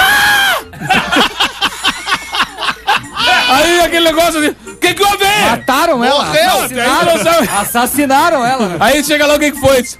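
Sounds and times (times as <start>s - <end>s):
short high-pitched scream: 0.0s - 0.6s
laughter: 0.7s - 3.8s, 6.4s - 9.1s
speech: 4.1s - 9.9s.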